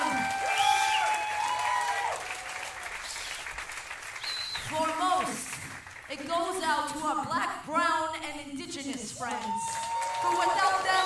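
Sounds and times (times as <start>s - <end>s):
audience clapping: 0.0s - 6.7s, 8.9s - 11.0s
speech: 7.0s - 11.0s.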